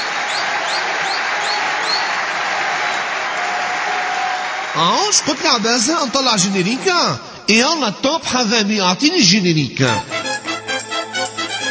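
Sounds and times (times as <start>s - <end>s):
audience applause: 0.0s - 7.1s
speech: 4.8s - 10.2s.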